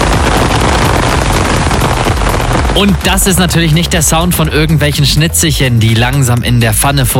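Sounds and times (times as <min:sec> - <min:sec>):
summer rain pouring: 0:00.0 - 0:05.4
speech: 0:02.8 - 0:07.1.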